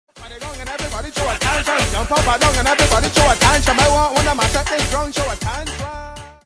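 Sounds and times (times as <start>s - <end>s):
reggae riddim: 0.1s - 6.4s.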